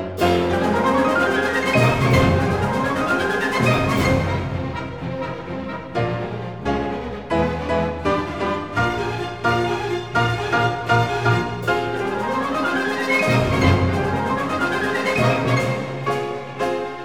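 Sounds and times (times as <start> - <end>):
allegro agitato music: 0.2 - 7.1, 8.2 - 16.8.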